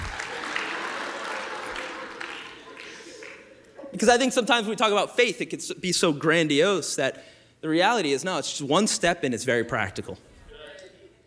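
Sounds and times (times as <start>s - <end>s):
crowd clapping: 0.0s - 3.7s
speech: 4.0s - 10.3s.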